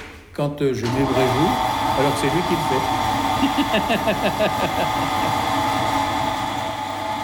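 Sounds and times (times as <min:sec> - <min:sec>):
speech: 0:00.4 - 0:05.5
press machine running: 0:00.8 - 0:07.2
laughter: 0:03.3 - 0:06.0.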